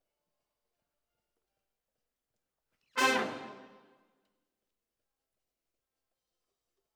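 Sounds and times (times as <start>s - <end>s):
brass instruments: 3.0s - 3.9s.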